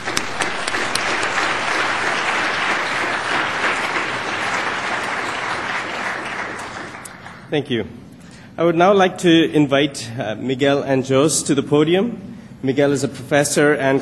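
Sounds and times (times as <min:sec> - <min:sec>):
sustained audience applause: 0:00.0 - 0:07.5
speech: 0:07.5 - 0:14.0.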